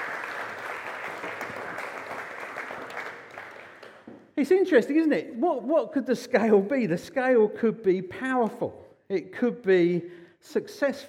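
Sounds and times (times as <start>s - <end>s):
audience applause: 0.0s - 4.1s
speech: 4.4s - 11.0s.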